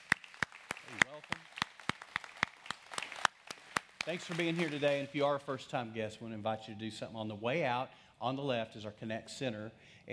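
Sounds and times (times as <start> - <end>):
audience hand clapping: 0.0 - 5.4
speech: 4.0 - 10.1.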